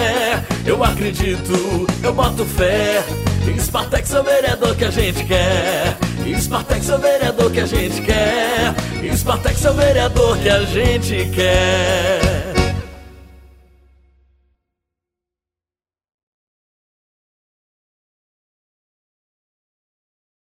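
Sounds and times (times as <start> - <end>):
jingle: 0.0 - 14.0.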